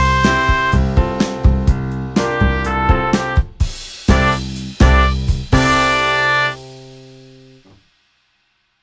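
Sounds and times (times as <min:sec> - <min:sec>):
trumpet: 0:00.0 - 0:01.4, 0:02.0 - 0:06.9.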